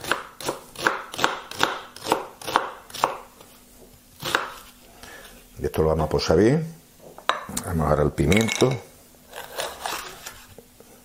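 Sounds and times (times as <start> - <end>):
knife chopping a soft onion: 0.0 - 3.4, 4.2 - 4.7
speech: 5.7 - 6.8, 7.7 - 8.9.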